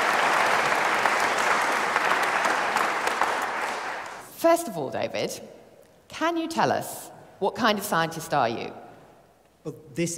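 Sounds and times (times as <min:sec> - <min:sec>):
round of applause: 0:00.0 - 0:04.2
speech: 0:04.4 - 0:08.8, 0:09.6 - 0:10.1.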